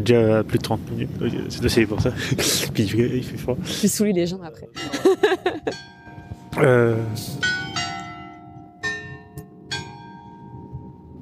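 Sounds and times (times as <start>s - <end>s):
speech: 0.0s - 6.0s, 6.6s - 7.6s
laughter: 4.8s - 5.8s
large clock bell chiming: 4.8s - 11.2s.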